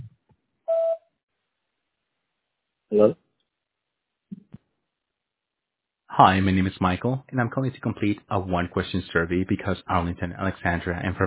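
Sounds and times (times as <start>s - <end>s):
voicemail beep tone: 0.7s - 1.0s
speech: 2.9s - 3.2s, 6.2s - 11.2s.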